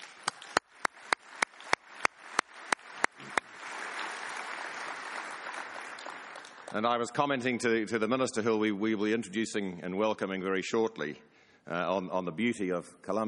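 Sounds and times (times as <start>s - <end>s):
audience applause: 0.0s - 7.2s
speech: 6.7s - 13.2s.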